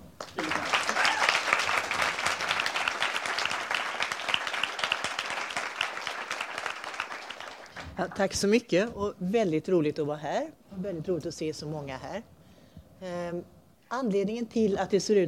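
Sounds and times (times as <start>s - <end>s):
warm audience applause: 0.0s - 8.0s
speech: 8.0s - 12.3s, 13.0s - 15.2s.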